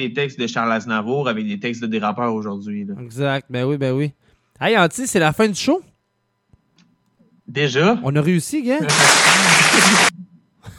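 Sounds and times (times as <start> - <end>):
speech: 0.0 - 5.9, 7.5 - 10.1
applause sound effect: 8.9 - 10.1
laughter: 8.9 - 10.1.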